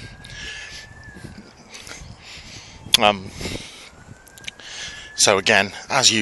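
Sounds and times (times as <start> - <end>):
street traffic noise: 0.0 - 6.1
speech: 3.0 - 3.5, 5.2 - 6.1.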